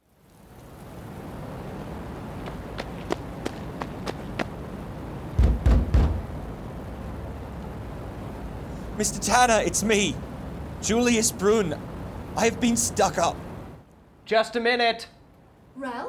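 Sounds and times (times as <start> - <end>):
steady hiss: 0.0 - 14.6
urgent knocking at a door: 5.4 - 6.3
speech: 9.0 - 13.4, 14.3 - 15.2, 15.8 - 16.0.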